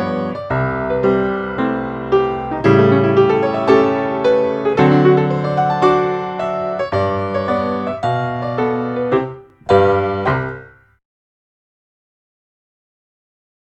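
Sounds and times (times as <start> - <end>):
ballet class music for battements and développés: 0.0 - 10.9.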